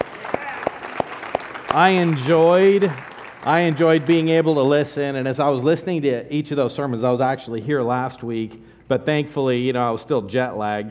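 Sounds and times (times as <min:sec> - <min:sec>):
audience applause: 0:00.0 - 0:04.6
speech: 0:01.7 - 0:10.9.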